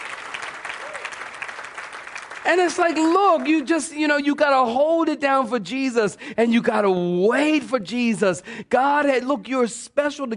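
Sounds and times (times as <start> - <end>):
audience clapping: 0.0 - 4.0
speech: 2.4 - 10.3.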